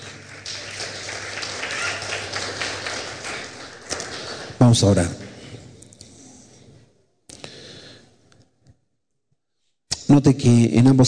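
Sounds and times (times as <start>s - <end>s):
crowd clapping: 0.0s - 5.4s
speech: 4.6s - 5.2s, 10.2s - 11.0s.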